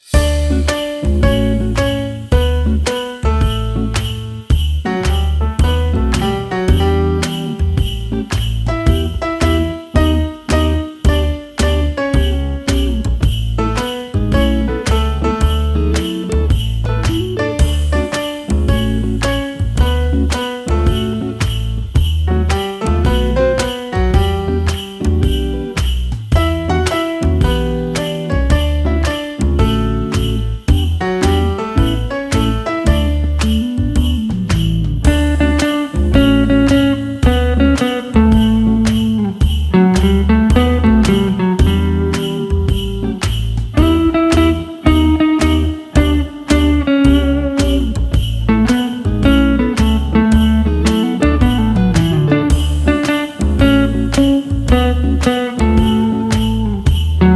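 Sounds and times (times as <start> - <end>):
Christmas jazz: 0.0 - 57.3.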